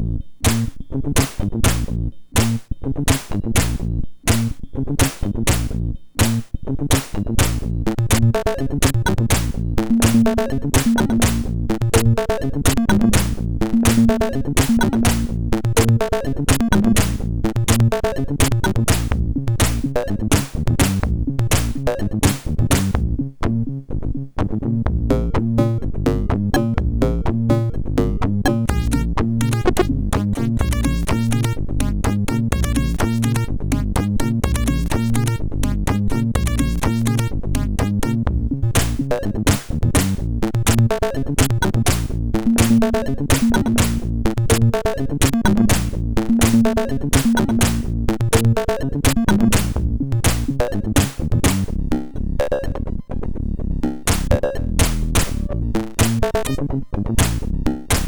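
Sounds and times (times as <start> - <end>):
funky MOS6581R4 SID chip music: 0.0 - 23.6, 24.9 - 58.0.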